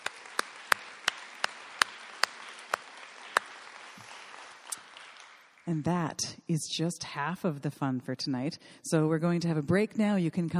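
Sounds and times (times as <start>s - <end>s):
audience applause: 0.0s - 5.8s
speech: 5.7s - 10.5s.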